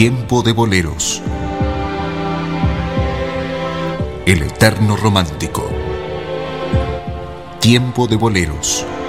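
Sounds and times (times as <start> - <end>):
speech: 0.0 - 1.4, 4.2 - 5.8, 7.6 - 9.0
heartbeat sound effect: 1.3 - 4.3, 6.7 - 7.5.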